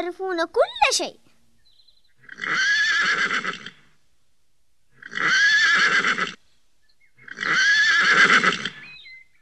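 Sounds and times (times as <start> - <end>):
speech: 0.0 - 1.3, 2.4 - 3.7
horse neighing: 2.2 - 3.8, 5.0 - 6.4, 7.2 - 8.8.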